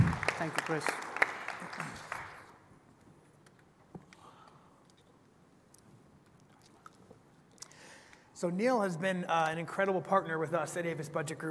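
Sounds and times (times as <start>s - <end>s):
audience applause: 0.0s - 2.6s
speech: 0.4s - 1.1s, 8.4s - 11.5s.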